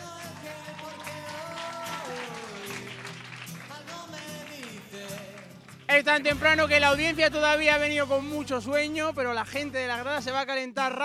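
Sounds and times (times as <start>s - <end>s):
audience applause: 0.0s - 6.2s
speech: 6.0s - 11.0s.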